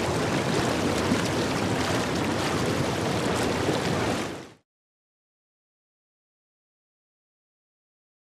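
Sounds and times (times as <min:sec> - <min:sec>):
hot tub jet at high speed: 0:00.0 - 0:04.6.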